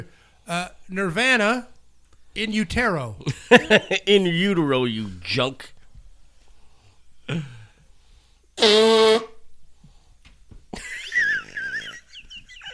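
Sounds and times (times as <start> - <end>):
speech: 0.0 - 1.7, 2.4 - 5.8, 7.3 - 7.6, 8.6 - 9.3
laughter: 3.3 - 4.0, 10.8 - 12.7
wet nose blowing: 8.6 - 9.4.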